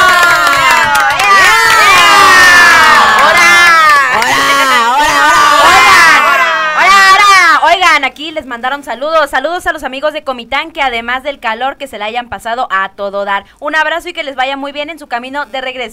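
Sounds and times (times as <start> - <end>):
applause: 0.0 - 5.0
cheering: 0.0 - 7.6
speech: 8.5 - 15.9.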